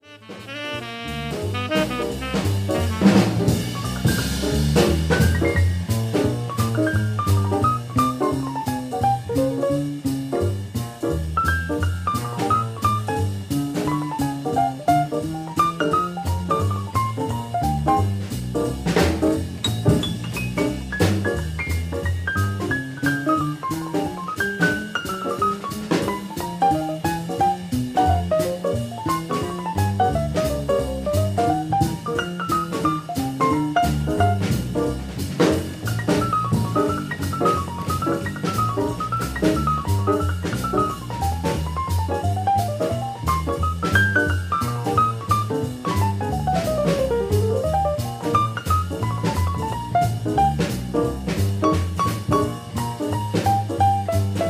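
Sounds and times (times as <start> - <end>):
solo piano: 0.0 - 54.4.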